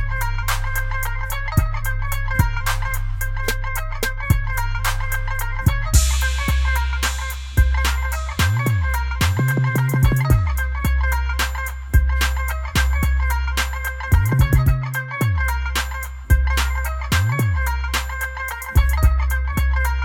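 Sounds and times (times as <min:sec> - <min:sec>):
tumbi bass: 0:00.0 - 0:20.0.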